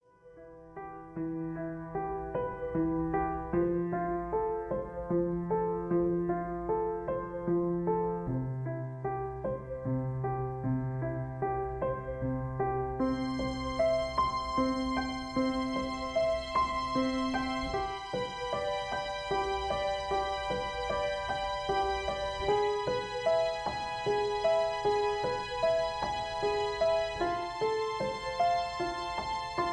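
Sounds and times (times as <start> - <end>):
instrumental music: 0.0 - 29.7.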